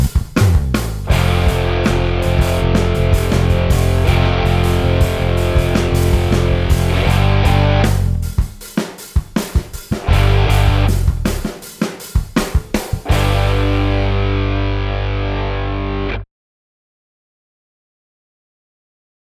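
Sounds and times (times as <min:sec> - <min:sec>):
guitar backing track: 0:00.0 - 0:08.6, 0:09.4 - 0:11.7, 0:12.3 - 0:16.2.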